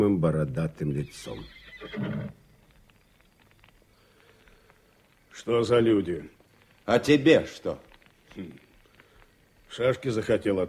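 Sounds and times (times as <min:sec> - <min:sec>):
speech: 0:00.0 - 0:02.4, 0:05.4 - 0:08.6, 0:09.7 - 0:10.6
horse neighing: 0:01.0 - 0:02.4.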